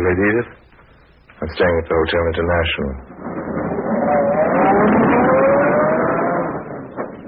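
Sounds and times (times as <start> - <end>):
speech: 0.1 - 0.6, 1.4 - 3.6
car engine starting and driving off: 3.1 - 7.2.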